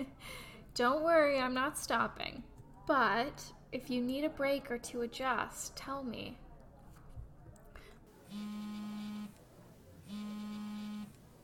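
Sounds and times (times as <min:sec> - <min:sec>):
speech: 0:00.0 - 0:06.4, 0:08.3 - 0:09.4
faint murmur: 0:00.0 - 0:11.4
phone ringing: 0:08.3 - 0:09.4, 0:10.1 - 0:11.2.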